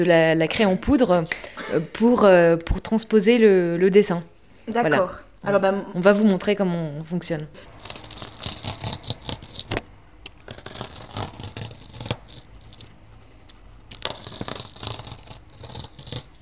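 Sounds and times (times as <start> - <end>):
speech: 0.0 - 7.7
pounce wheel perforating paper along letter outlines: 7.6 - 9.8, 10.5 - 12.9, 13.9 - 16.4.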